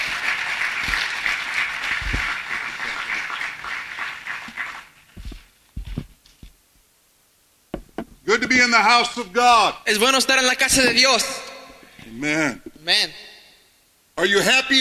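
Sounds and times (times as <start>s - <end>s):
church congregation applause as an offering of praise to God: 0.0s - 5.5s
scattered thumps: 7.7s - 8.7s
speech: 8.4s - 11.4s, 12.2s - 13.2s, 14.2s - 14.7s.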